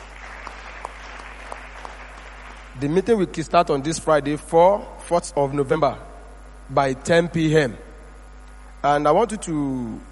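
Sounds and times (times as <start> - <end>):
church congregation clapping during a service: 0.0 - 3.3
speech: 2.8 - 6.1, 6.7 - 7.9, 8.8 - 10.0.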